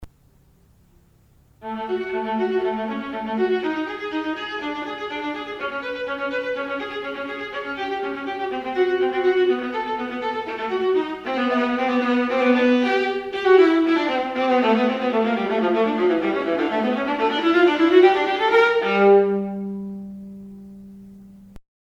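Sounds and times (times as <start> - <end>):
viola: 1.6 - 21.6.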